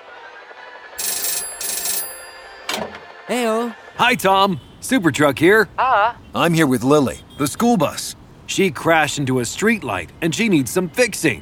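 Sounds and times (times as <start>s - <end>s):
telephone ringing on outgoing call: 1.0s - 3.0s
speech: 2.8s - 11.4s.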